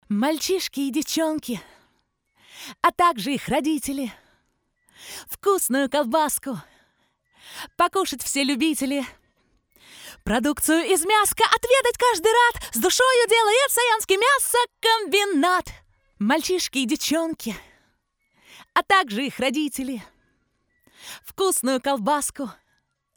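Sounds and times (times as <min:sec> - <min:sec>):
vocals: 0:00.0 - 0:01.8, 0:02.5 - 0:04.3, 0:05.0 - 0:06.8, 0:07.4 - 0:09.2, 0:09.8 - 0:17.7, 0:18.5 - 0:20.1, 0:21.0 - 0:22.6.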